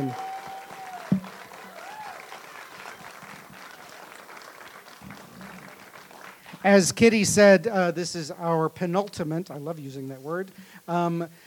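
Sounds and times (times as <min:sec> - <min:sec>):
audience applause: 0:00.0 - 0:06.8
speech: 0:06.6 - 0:11.4.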